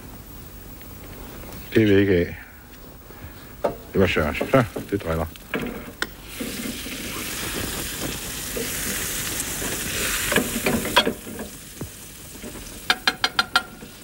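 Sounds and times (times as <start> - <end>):
speech: 1.8 - 2.4, 4.0 - 5.8
butter sizzling and browning in a frying pan: 4.0 - 14.0.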